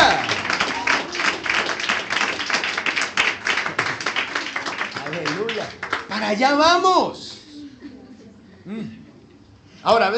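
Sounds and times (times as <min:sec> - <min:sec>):
audience applauding: 0:00.0 - 0:06.6
speech: 0:06.3 - 0:07.2, 0:09.8 - 0:10.1.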